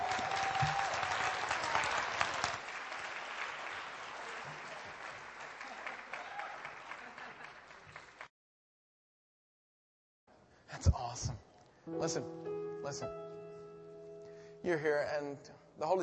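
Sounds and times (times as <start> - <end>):
church congregation applauding a woman before her baptism: 0.0 - 8.3
speech: 11.2 - 13.2, 14.6 - 16.0.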